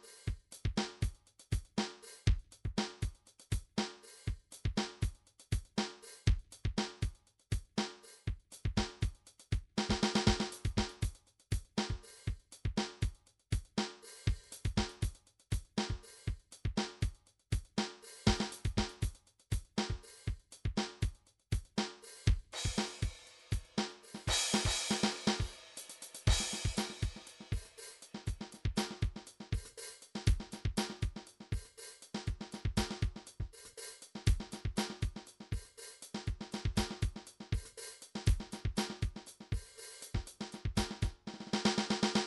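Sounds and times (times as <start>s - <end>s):
funky snare drum train pattern: 0.0s - 42.2s.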